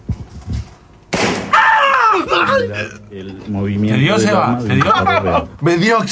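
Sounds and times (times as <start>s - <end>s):
CO2 gas pistol simulated gunshot with escaping carbon dioxide hiss: 1.1s - 1.6s
speech: 2.6s - 6.1s
laughter: 4.0s - 5.6s.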